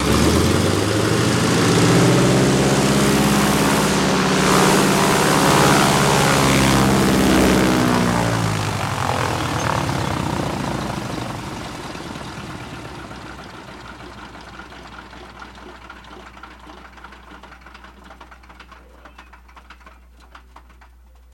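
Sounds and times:
de Havilland Canada DHC propeller plane engine revving, holding and shutting off: 0:00.0 - 0:20.4.

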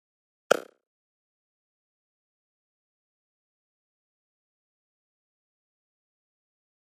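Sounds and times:
button click with reverb: 0:00.5 - 0:00.7.

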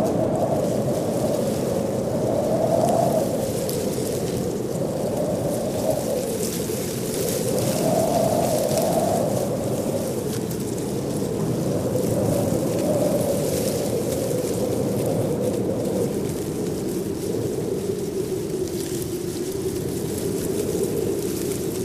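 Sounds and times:
light wind rustling leaves in trees: 0:00.0 - 0:21.8.

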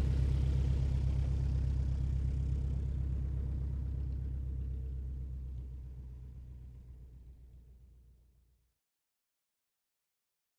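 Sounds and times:
prop plane engine revving up and taxiing: 0:00.0 - 0:05.0.

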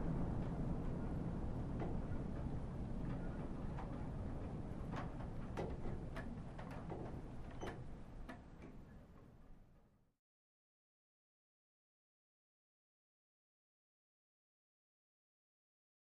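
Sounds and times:
wind inside a dilapidated shack: 0:00.0 - 0:10.1.

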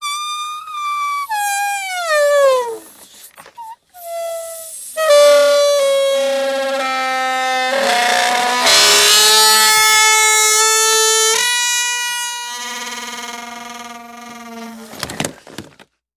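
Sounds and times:
giant balloon squeaking: 0:00.0 - 0:15.9.

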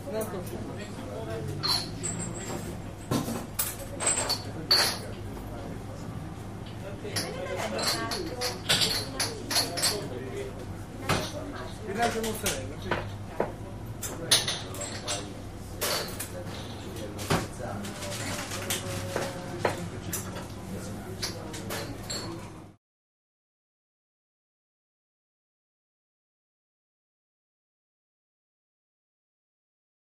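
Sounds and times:
restaurant ambience in Rome Italy: 0:00.0 - 0:22.8.

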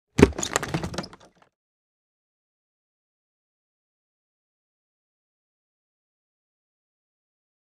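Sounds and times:
impact scraping on wood: 0:00.2 - 0:01.3.

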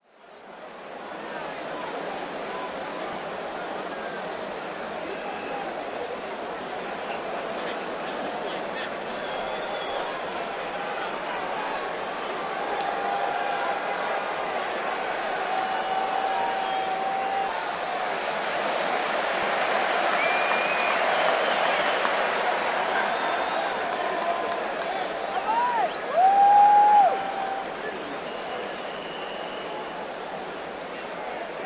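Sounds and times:
large crowd roaring and cheering at a pro football game in an outdoor stadium: 0:00.8 - 0:31.6.

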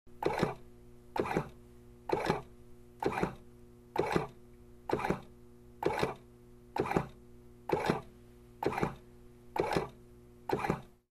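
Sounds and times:
ventilator hum: 0:00.1 - 0:11.0
ventilator bellows pumping oxygen: 0:00.2 - 0:00.6, 0:01.2 - 0:03.4, 0:04.0 - 0:06.2, 0:06.8 - 0:09.0, 0:09.6 - 0:11.0.

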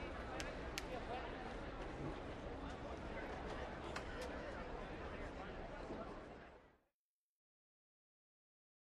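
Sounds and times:
quiet hockey crowd idle before a game: 0:00.0 - 0:06.8.

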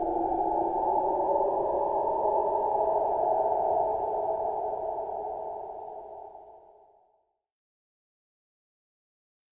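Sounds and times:
ghostly swirling spirit air: 0:00.0 - 0:06.5.

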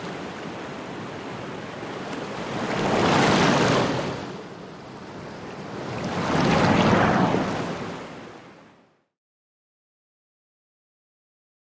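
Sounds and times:
close-up water detail: 0:00.0 - 0:09.2.

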